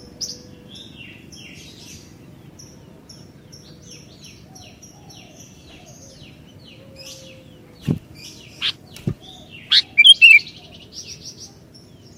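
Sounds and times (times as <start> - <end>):
Sooty-headed bulbul song: 8.5 - 11.2.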